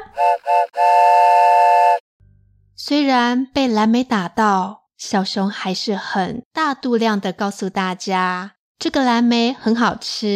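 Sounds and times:
train whistle: 0.0 - 2.0
speech: 0.2 - 1.1, 2.8 - 10.3.

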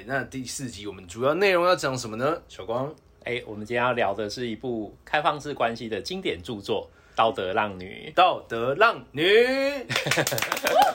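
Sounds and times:
speech: 0.0 - 10.9
hands clapping: 9.9 - 10.9.

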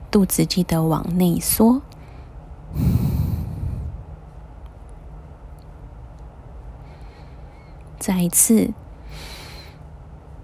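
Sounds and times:
speech: 0.1 - 2.0, 2.7 - 3.0, 8.0 - 9.3
gentle exhale through the nose during a breathing exercise: 2.7 - 4.1.

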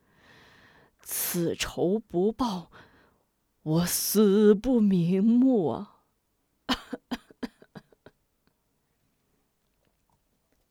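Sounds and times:
speech: 1.3 - 2.8, 3.6 - 5.9
man coughing: 6.7 - 8.1.

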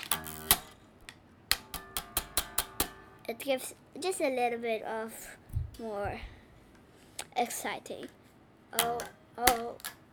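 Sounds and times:
hand slapping guitar strings: 0.0 - 3.3, 8.8 - 10.1
speech: 3.3 - 6.4, 7.4 - 9.9.

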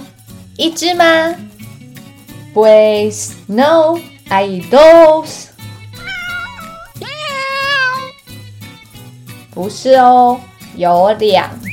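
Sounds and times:
speech: 0.6 - 1.5, 2.6 - 5.5, 9.6 - 11.7
cat meowing: 6.0 - 8.2.

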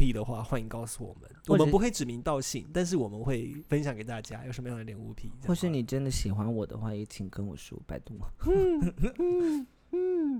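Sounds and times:
speech: 0.0 - 10.3
person imitating owl hoots: 8.5 - 10.3.

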